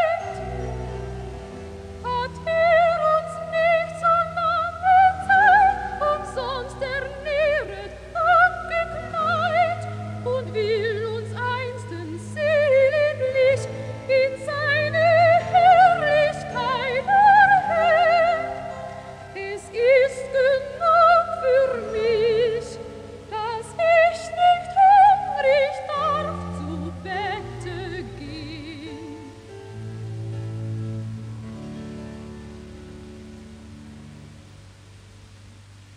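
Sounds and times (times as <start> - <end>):
soprano singing recitative: 0.0 - 0.9, 2.0 - 29.6.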